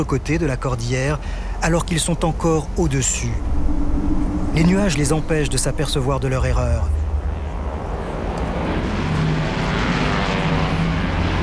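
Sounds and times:
speech: 0.0 - 3.7, 4.6 - 7.0
airplane flying overhead: 0.0 - 11.4.

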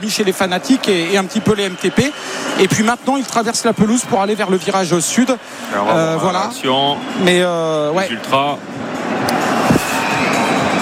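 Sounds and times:
speech: 0.0 - 9.0
stadium crowd whistling in disapproval: 0.4 - 5.7, 9.0 - 10.8.

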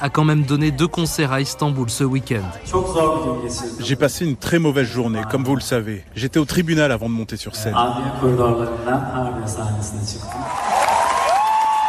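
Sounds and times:
speech: 0.0 - 10.6
audience applause at concert: 10.3 - 11.8.

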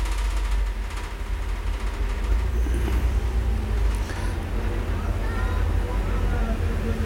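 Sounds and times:
steady street traffic with passing cars and motorcycles: 0.0 - 7.0
vehicles passing: 2.1 - 7.0
indistinct voices murmuring: 2.3 - 7.0.

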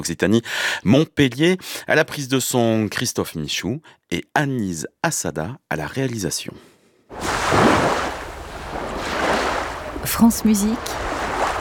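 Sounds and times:
speech: 0.0 - 7.7, 10.0 - 11.0
ocean waves: 7.1 - 11.5.

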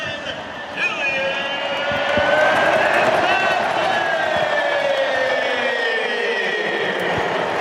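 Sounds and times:
stadium crowd cheering after goal: 0.0 - 7.5.

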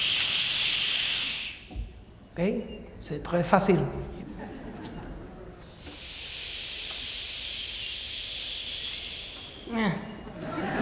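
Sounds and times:
crowd shushing hiss imitating sea waves: 0.0 - 1.7, 5.6 - 9.7
speech: 2.4 - 4.5
laughter: 4.1 - 5.7, 10.1 - 10.7.

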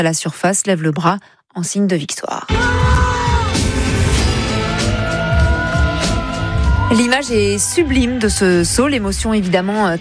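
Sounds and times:
speech: 0.0 - 4.2, 6.9 - 9.9
whoops and shouts of excitement: 2.5 - 3.6, 4.6 - 8.8
spectators applauding a record high dive: 2.6 - 9.0.

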